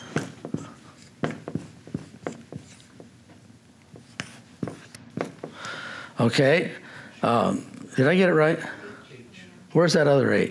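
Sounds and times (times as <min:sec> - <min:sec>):
writing on a board during a lecture: 0:00.0 - 0:05.6
speech: 0:06.2 - 0:08.8, 0:09.8 - 0:10.4.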